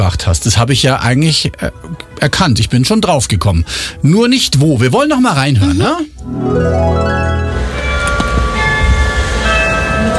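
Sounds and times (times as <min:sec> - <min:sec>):
speech: 0:00.0 - 0:07.6
church bells chiming: 0:06.2 - 0:10.1.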